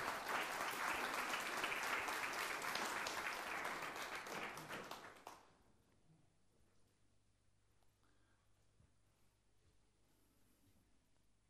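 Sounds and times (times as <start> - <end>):
church congregation applauding to acclaim the Lord: 0.0 - 5.6.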